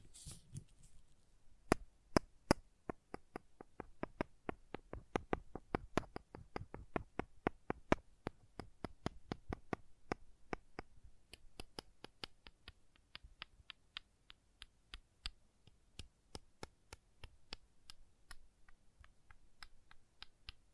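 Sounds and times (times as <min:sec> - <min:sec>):
crayon tapping: 0:01.7 - 0:20.7.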